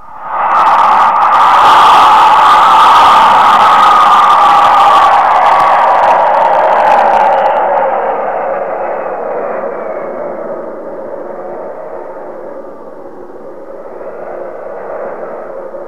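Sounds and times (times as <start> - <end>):
loud crowd roar: 0.2 - 12.7.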